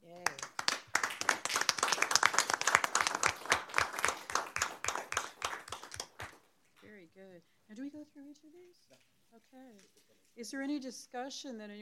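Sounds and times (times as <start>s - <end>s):
meeting attendees applauding: 0.0s - 6.5s
speech: 10.4s - 11.8s.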